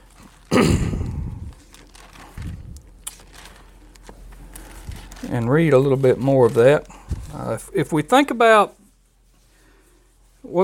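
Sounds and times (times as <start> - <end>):
Bible pages being turned: 0.0 - 8.1
speech: 5.4 - 8.8, 10.5 - 10.6.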